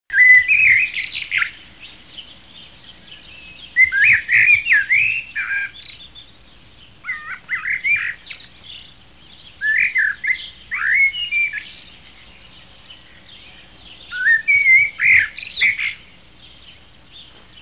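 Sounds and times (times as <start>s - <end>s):
birds chirping whistles: 0.1s - 17.5s.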